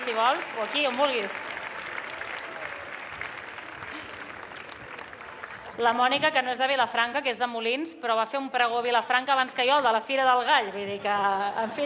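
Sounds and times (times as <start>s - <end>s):
audience applause: 0.0s - 5.8s
speech: 0.1s - 1.5s, 5.8s - 11.8s.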